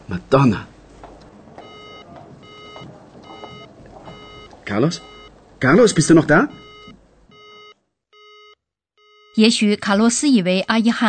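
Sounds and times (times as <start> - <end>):
speech: 0.1 - 0.7, 4.7 - 6.6, 9.4 - 11.0
telephone disconnected tone: 1.6 - 9.3.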